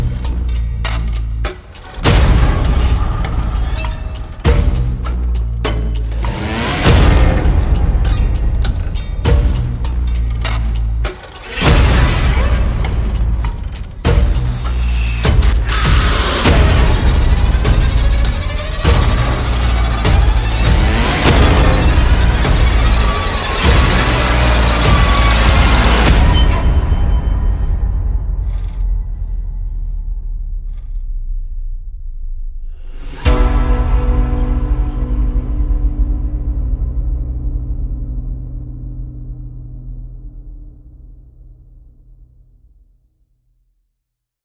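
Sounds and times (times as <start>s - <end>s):
horror soundscape without melody: 0.0s - 42.8s.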